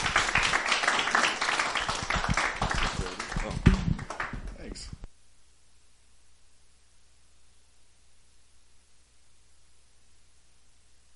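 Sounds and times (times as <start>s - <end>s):
audience applause: 0.0s - 4.9s.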